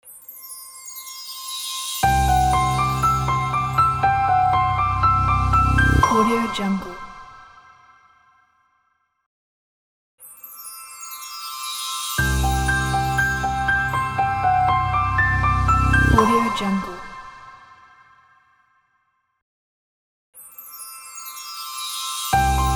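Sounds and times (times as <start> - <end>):
piano ident: 2.0 - 7.4, 12.2 - 17.8, 22.4 - 22.7.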